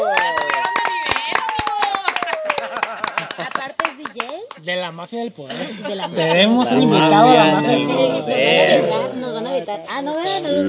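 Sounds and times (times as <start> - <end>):
audience applause: 0.0 - 4.6
laughter: 1.8 - 4.4, 5.4 - 8.9
speech: 4.7 - 10.6.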